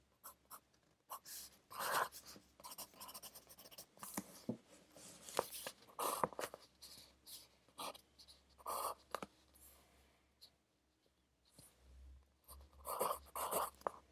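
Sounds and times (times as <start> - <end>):
pencil writing while studying: 0.2 - 4.5, 5.2 - 9.3, 12.5 - 14.1.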